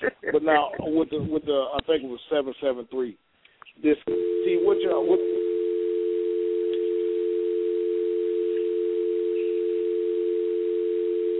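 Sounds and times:
speech: 0.5 - 5.4
telephone dial tone from phone left off-hook: 4.1 - 11.3.

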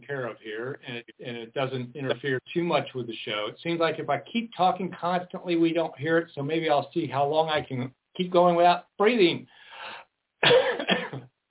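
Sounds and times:
speech: 0.1 - 11.3
person coughing: 10.4 - 11.3.

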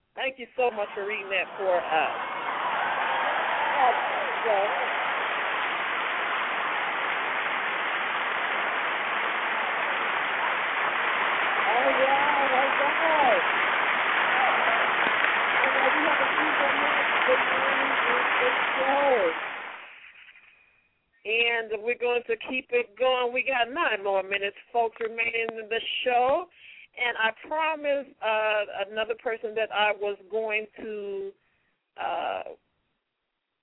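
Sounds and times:
speech: 0.3 - 2.3, 3.8 - 4.9, 21.6 - 31.4
audience clapping: 0.8 - 20.3.

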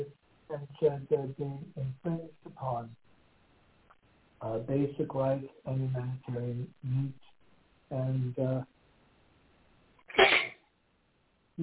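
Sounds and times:
speech: 0.8 - 3.0, 4.4 - 7.2, 7.9 - 8.8
person with a cold sneezing: 10.1 - 10.6.

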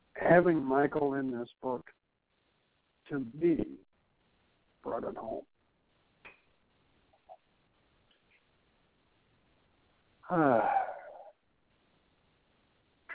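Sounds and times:
speech: 0.3 - 2.0, 3.1 - 3.8, 4.8 - 5.5, 10.3 - 10.8
deep breath: 10.5 - 11.3.

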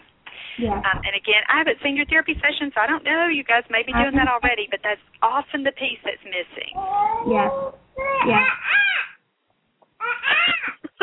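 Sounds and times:
speech: 0.6 - 9.0
young child imitating a monkey: 6.8 - 9.2.

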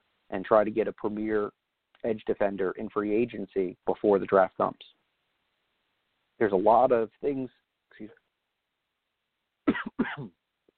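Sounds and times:
speech: 0.3 - 5.0, 6.4 - 8.2, 10.2 - 10.4
sports radio host coughing: 9.7 - 10.4.

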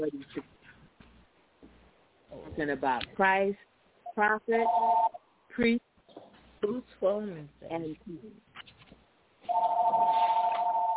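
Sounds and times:
speech: 0.0 - 0.6, 2.6 - 5.9, 6.6 - 8.4
phone ringing with a steady electronic tone: 4.1 - 5.2, 9.5 - 10.9.

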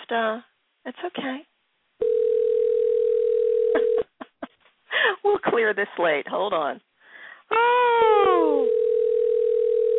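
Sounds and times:
speech: 0.1 - 1.5, 5.0 - 6.8, 7.5 - 8.8
telephone ringing sound effect: 2.0 - 4.0, 8.4 - 9.9.

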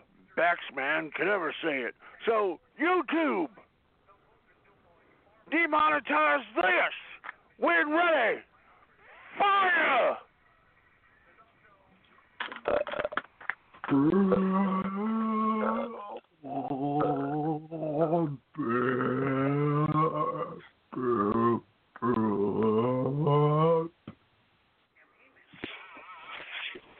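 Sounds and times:
speech: 0.5 - 3.6, 5.5 - 8.5, 9.3 - 10.3, 12.7 - 13.1, 13.9 - 14.7
long loud belch: 12.5 - 13.3, 13.9 - 23.9.

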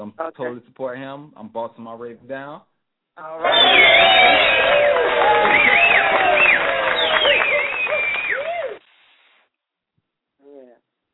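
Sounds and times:
speech: 0.0 - 6.7
audience booing: 3.4 - 8.8.

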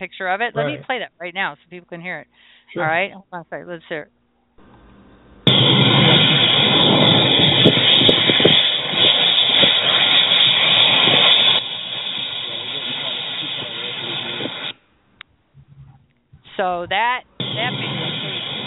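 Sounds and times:
speech: 0.0 - 4.2, 16.6 - 18.0
pipe sticking out of the ground hissing: 5.5 - 14.8.

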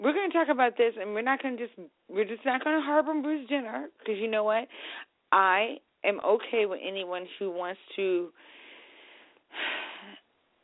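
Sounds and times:
speech: 0.4 - 8.6, 9.5 - 10.2
heavy breath: 4.7 - 5.1, 8.4 - 10.3.

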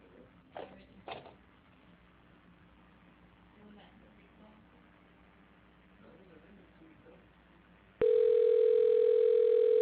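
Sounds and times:
telephone dial tone: 8.0 - 9.8.

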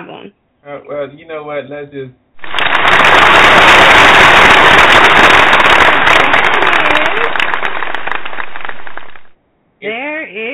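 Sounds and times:
speech: 0.0 - 7.5, 9.8 - 10.5
clapping: 2.4 - 9.3.

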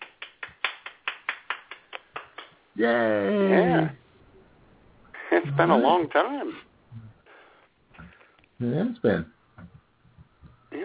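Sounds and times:
rhythmic hand clapping: 0.0 - 2.6
speech: 2.8 - 4.0, 5.4 - 6.7, 8.6 - 9.4.

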